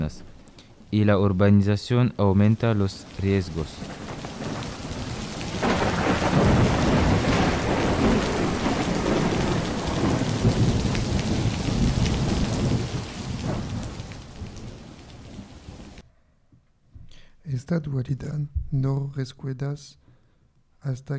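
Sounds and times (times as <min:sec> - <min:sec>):
steady heavy rain: 0:00.0 - 0:01.1, 0:02.3 - 0:16.0
deep thunder rumbling: 0:00.0 - 0:01.4, 0:02.1 - 0:16.0
speech: 0:00.9 - 0:04.0, 0:17.7 - 0:20.0, 0:20.8 - 0:21.1.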